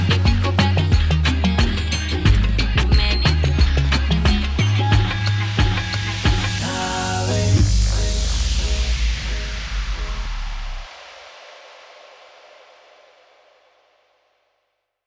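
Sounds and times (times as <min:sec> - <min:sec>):
Middle East promo music bed: 0:00.0 - 0:10.8.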